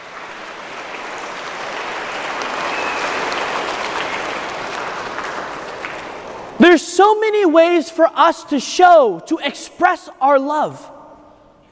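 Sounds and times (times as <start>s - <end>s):
crowd round of applause: 0.0s - 6.6s
speech: 6.6s - 11.0s.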